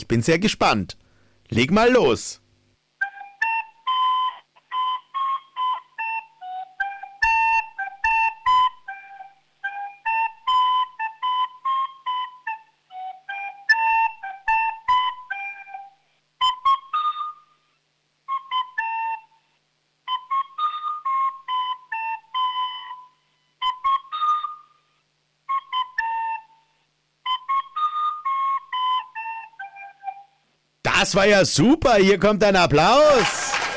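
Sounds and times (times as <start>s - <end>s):
speech: 0.0s - 2.4s, 31.1s - 33.6s
child playing a dance tune on a recorder-like flute: 3.0s - 17.5s, 18.2s - 30.4s.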